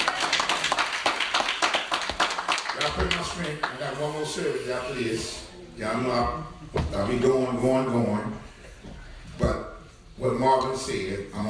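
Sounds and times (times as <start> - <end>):
church congregation clapping to thank the speakers: 0.0 - 4.4
speech: 2.8 - 8.5, 10.2 - 11.4.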